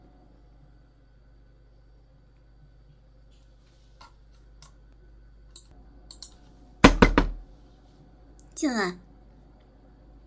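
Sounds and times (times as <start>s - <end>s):
hard knocking on a door: 6.8s - 7.5s
speech: 8.6s - 9.1s.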